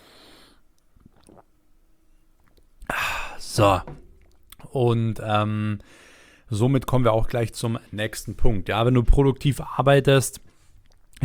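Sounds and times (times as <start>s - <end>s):
person sipping water: 0.8s - 1.6s, 2.4s - 4.6s, 10.4s - 11.2s
swallowing: 1.0s - 1.6s, 2.4s - 4.6s, 10.4s - 11.2s
speech: 3.6s - 4.0s, 4.7s - 10.5s.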